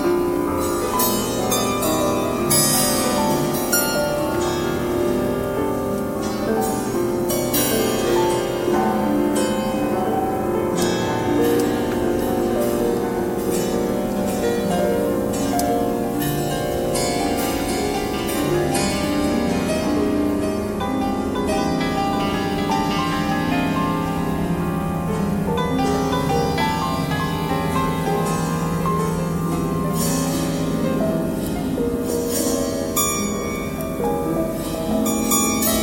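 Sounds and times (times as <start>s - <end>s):
piano string noise: 0.0s - 35.8s.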